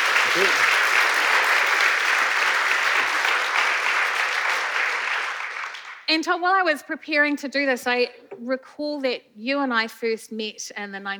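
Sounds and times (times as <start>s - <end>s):
audience applause: 0.0s - 6.1s
speech: 0.4s - 0.8s, 6.1s - 11.1s.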